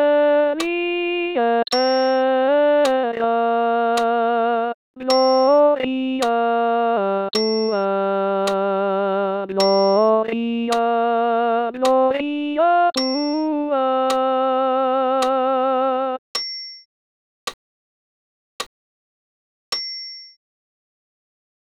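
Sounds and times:
alto voice singing a Sanctus alone: 0:00.0 - 0:16.2.

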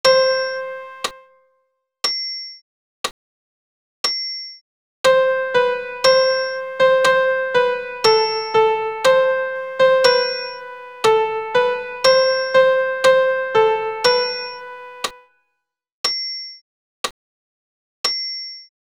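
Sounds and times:
soprano and piano: 0:00.0 - 0:01.3, 0:05.1 - 0:15.2.

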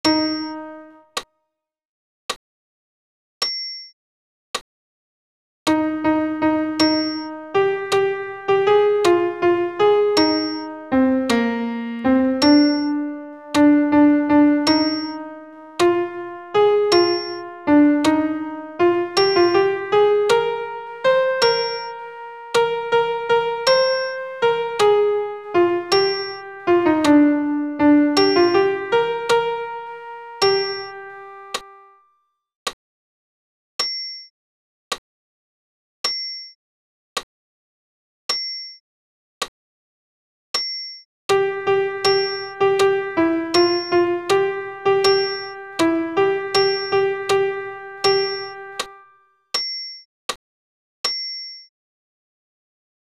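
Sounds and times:
solo piano: 0:00.0 - 0:01.1, 0:05.7 - 0:31.9, 0:41.3 - 0:49.1.

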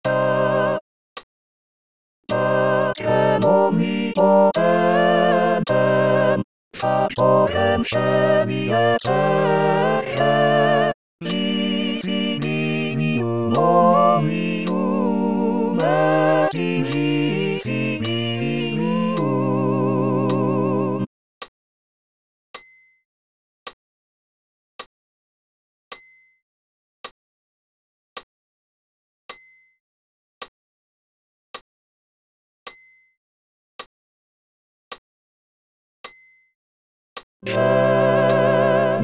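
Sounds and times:
choir singing a Credo with all voices: 0:00.1 - 0:00.8, 0:02.3 - 0:21.1, 0:37.4 - 0:39.0.

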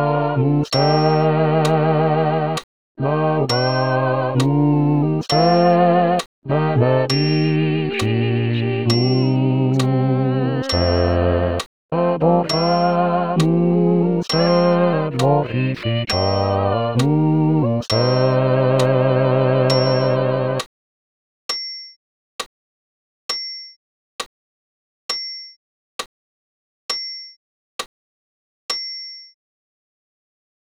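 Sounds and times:
bass voice: 0:00.0 - 0:20.6.

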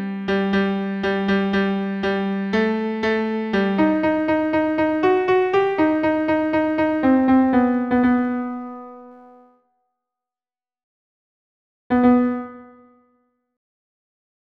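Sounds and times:
solo piano: 0:00.0 - 0:09.6, 0:11.9 - 0:13.0.

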